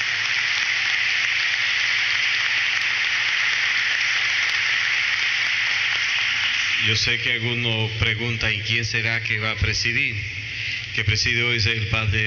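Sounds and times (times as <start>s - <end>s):
audience applause: 0.0s - 7.2s
speech: 6.8s - 10.4s, 11.0s - 12.2s.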